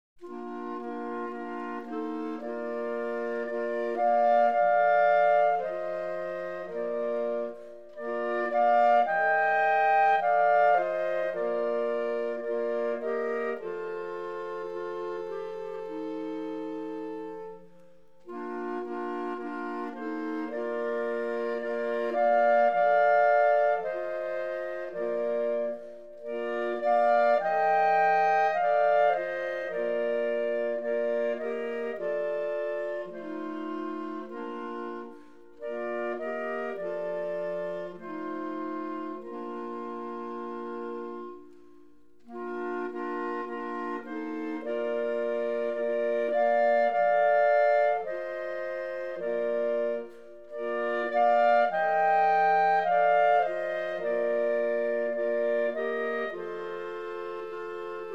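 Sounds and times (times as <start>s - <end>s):
clarinet quartet: 0.2s - 58.1s.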